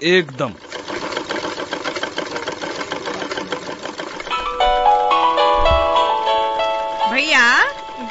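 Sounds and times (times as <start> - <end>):
speech: 0.0 - 0.6, 7.2 - 7.8
sewing machine running: 0.0 - 8.0
bright electronic melody with warbling tones: 4.3 - 8.0.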